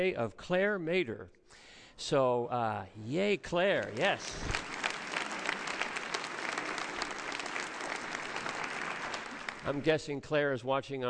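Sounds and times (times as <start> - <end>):
speech: 0.0 - 4.6, 9.6 - 11.0
crowd applauding: 3.8 - 10.0.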